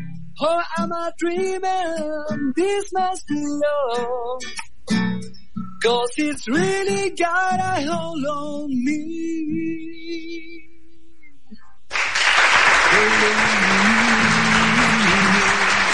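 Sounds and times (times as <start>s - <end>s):
speech: 0.4s - 10.2s
applause: 11.9s - 15.9s.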